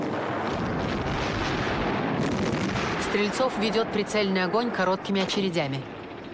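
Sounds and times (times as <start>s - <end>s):
artillery shells exploding behind trenches in a war film soundtrack: 0.0s - 3.5s
speech: 3.1s - 5.9s.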